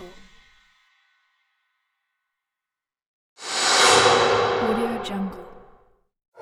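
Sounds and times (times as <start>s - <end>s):
trailer music: 3.4s - 5.6s.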